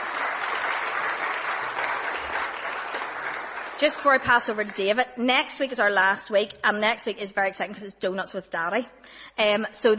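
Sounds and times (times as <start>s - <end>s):
audience clapping: 0.0s - 5.0s
speech: 3.8s - 9.9s.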